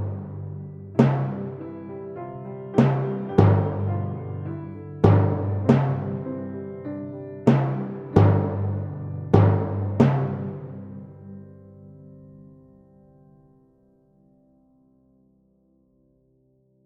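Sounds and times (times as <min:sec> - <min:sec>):
timpani: 0:00.0 - 0:11.5.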